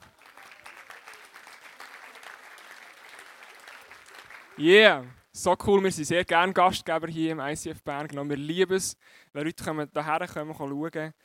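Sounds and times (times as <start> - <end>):
audience applause: 0.0 - 4.7
speech: 4.6 - 11.2.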